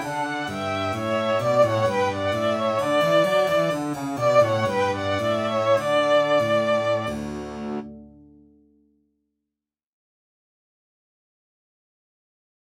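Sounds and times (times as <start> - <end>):
string trio: 0.0 - 8.2.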